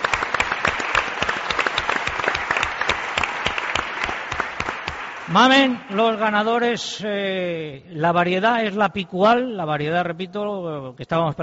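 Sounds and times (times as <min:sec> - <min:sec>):
applause: 0:00.0 - 0:06.4
speech: 0:05.3 - 0:11.4.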